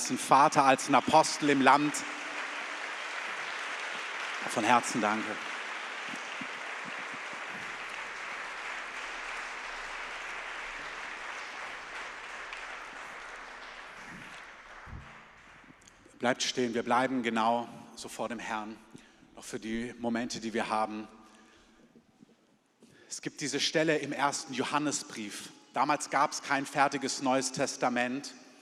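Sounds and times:
audience applause: 0.0 - 15.8
speech: 0.1 - 2.2, 4.4 - 5.5, 16.2 - 21.2, 23.1 - 28.4.

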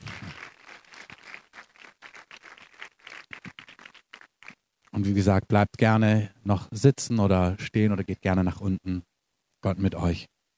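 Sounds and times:
audience applause: 0.0 - 4.6
speech: 5.0 - 10.3.

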